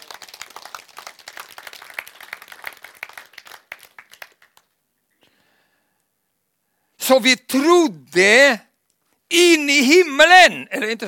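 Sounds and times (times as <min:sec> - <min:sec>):
crowd applause: 0:00.0 - 0:04.7
faint hiss: 0:00.0 - 0:11.0
speech: 0:07.1 - 0:08.7, 0:09.3 - 0:11.0.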